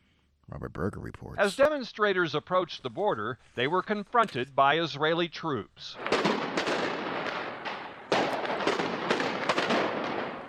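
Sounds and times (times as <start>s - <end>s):
speech: 0.5s - 6.4s
tear gas and rubber bullets being fired: 6.0s - 10.4s.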